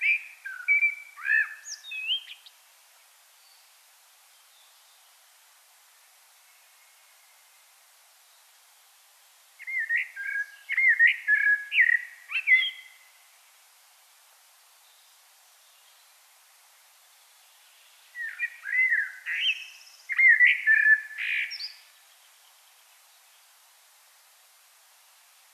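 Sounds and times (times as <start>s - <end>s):
common blackbird fluted song: 0.0s - 2.5s, 9.6s - 13.0s, 18.1s - 21.9s
steady hiss: 0.0s - 25.5s.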